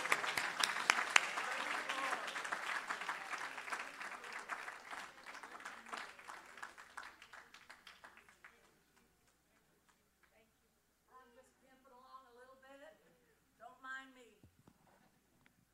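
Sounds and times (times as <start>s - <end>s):
audience clapping hands: 0.0s - 10.4s.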